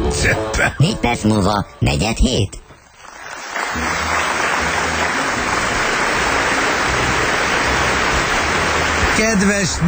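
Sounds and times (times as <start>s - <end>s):
speech: 0.1s - 2.6s, 3.7s - 4.1s, 9.2s - 9.8s
crowd applause: 2.9s - 9.8s.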